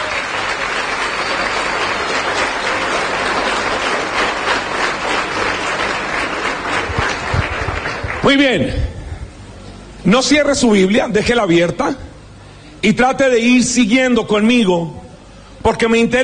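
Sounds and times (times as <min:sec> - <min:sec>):
audience applauding: 0:00.0 - 0:08.4
speech: 0:08.2 - 0:08.8, 0:10.0 - 0:12.1, 0:12.8 - 0:15.0, 0:15.6 - 0:16.2.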